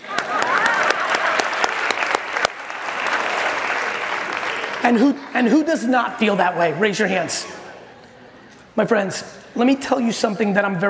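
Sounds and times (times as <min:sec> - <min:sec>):
audience clapping: 0:00.0 - 0:05.2
speech: 0:04.8 - 0:07.6, 0:08.8 - 0:10.8.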